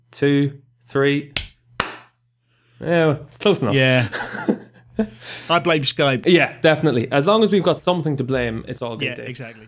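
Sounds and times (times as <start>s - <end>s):
speech: 0.1s - 1.4s, 2.8s - 9.6s
hand claps: 1.4s - 2.2s
laughter: 3.8s - 5.2s.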